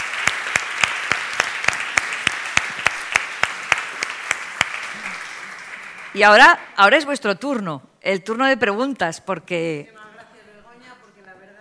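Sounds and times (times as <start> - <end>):
audience applause: 0.0 - 6.2
speech: 6.2 - 10.0.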